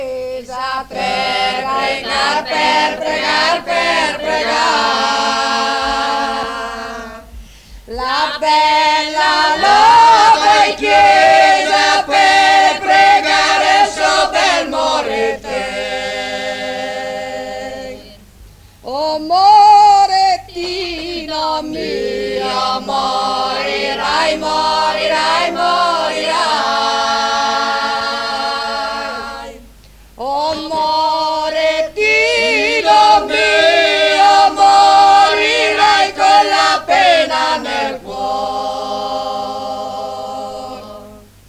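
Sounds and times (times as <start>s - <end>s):
women's choir singing: 0.0s - 18.3s, 18.9s - 41.4s.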